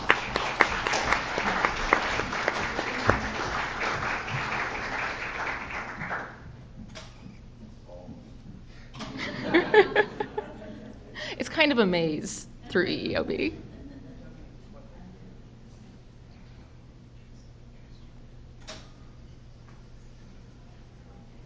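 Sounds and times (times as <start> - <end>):
laughter: 0.0 - 4.9, 9.0 - 11.3, 12.7 - 14.6
crowd applauding: 0.0 - 6.5
speech: 11.8 - 13.6.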